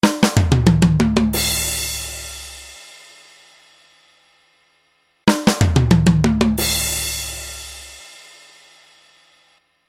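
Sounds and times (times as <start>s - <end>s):
snare drum: 0.0s - 2.2s, 5.3s - 7.6s.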